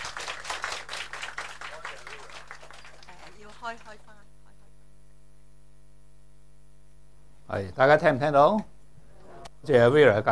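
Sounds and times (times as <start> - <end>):
audience applause: 0.0 - 4.1
speech: 3.6 - 4.3, 7.5 - 8.7, 9.6 - 10.3.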